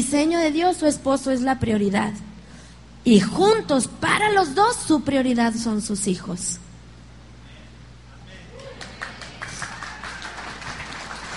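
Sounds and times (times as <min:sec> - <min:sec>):
speech: 0:00.1 - 0:02.3, 0:03.0 - 0:06.6
applause from the married couples: 0:08.5 - 0:11.3.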